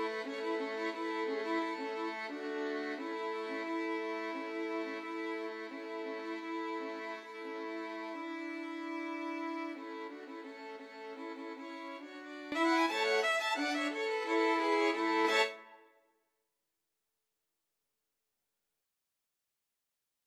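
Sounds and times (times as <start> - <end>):
violin trio: 0.0 - 15.8.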